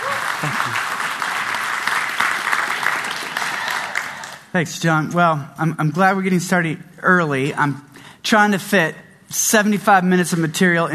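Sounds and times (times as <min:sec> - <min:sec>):
audience applause welcoming a speaker to a breakout session: 0:00.0 - 0:04.5
speech: 0:00.4 - 0:00.9, 0:04.5 - 0:10.9.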